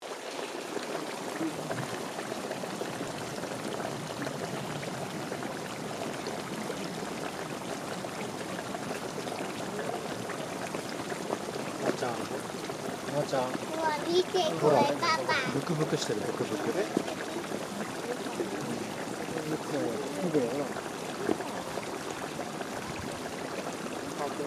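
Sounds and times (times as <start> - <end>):
hot spring sounds of Unzen Jigoku Onsen: 0.0 - 24.4.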